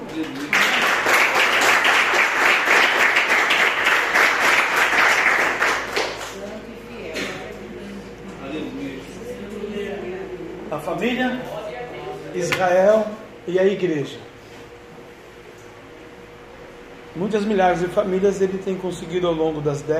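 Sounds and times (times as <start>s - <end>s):
crowd applauding loudly: 0.0s - 6.4s
speech: 0.2s - 0.6s, 11.0s - 11.5s, 12.4s - 14.3s, 17.2s - 19.9s
quieter murmuring: 6.7s - 11.1s.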